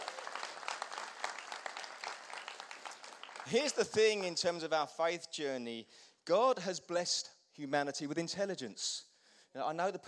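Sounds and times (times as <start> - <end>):
audience applause: 0.0 - 4.2
speech: 3.4 - 10.0.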